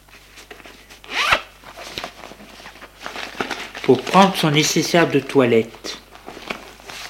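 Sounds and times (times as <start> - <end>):
suitcase zipper unzipping: 1.1 - 1.4
speech: 3.9 - 6.0.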